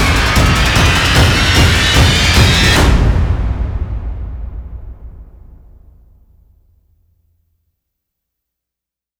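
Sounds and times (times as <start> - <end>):
drums: 0.0 - 6.6.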